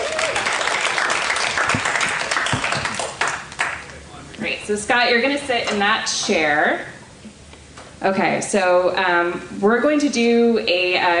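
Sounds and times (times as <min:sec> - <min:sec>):
audience clapping: 0:00.0 - 0:04.2
speech: 0:04.7 - 0:06.9, 0:08.0 - 0:11.1.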